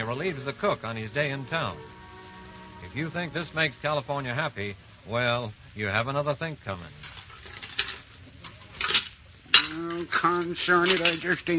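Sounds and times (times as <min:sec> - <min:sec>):
speech: 0:00.1 - 0:02.0, 0:02.9 - 0:07.1, 0:09.7 - 0:11.5
pans being washed in a kitchen: 0:07.0 - 0:11.5.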